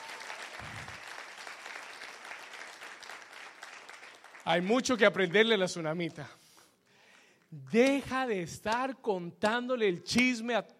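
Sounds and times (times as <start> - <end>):
applause: 0.0 - 6.2, 6.9 - 8.9
speech: 4.5 - 6.4, 7.7 - 10.7.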